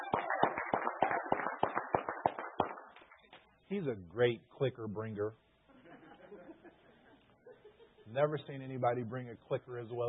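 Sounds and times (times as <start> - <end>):
small group applause: 0.0 - 3.4
speech: 3.7 - 5.4, 8.1 - 10.0.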